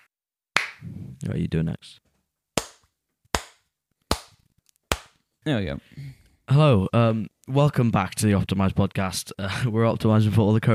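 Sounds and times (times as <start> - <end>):
hand claps for syncing audio and video on an iPhone recording: 0.0 - 0.8, 2.6 - 5.2
speech: 1.2 - 2.1, 5.4 - 10.7.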